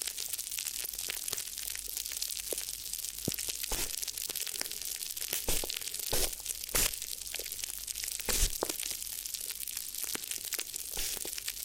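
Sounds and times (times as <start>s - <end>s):
crinkly crackling and rustling: 0.0s - 11.6s
sharp loud crunches: 3.7s - 4.0s, 5.4s - 7.0s, 8.2s - 8.8s, 10.9s - 11.3s.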